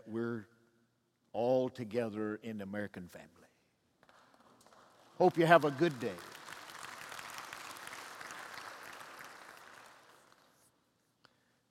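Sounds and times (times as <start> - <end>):
speech: 1.8 - 3.5, 5.2 - 6.4
audience clapping: 4.0 - 10.8.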